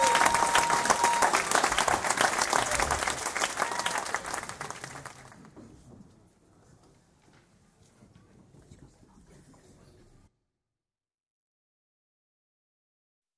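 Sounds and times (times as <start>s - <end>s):
big crowd audience applause: 0.0s - 5.6s.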